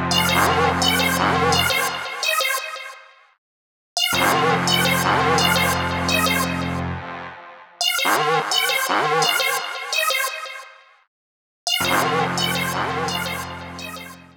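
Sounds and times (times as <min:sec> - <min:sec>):
neuro drum and bass boss battle music: 0:00.1 - 0:02.5, 0:04.0 - 0:06.8, 0:07.8 - 0:10.4, 0:11.7 - 0:14.2.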